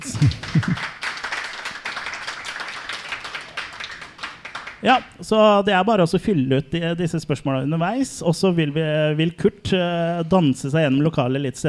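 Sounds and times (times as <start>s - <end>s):
laughter: 0.0s - 1.0s
audience clapping: 0.0s - 5.2s
speech: 0.2s - 0.4s, 4.8s - 11.6s.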